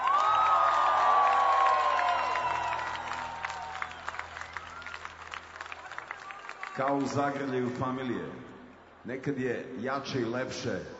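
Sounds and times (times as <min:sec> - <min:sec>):
audience applause and cheering at a show: 0:00.0 - 0:07.7
long piercing descending whistle: 0:00.3 - 0:05.2
speech: 0:06.8 - 0:10.9.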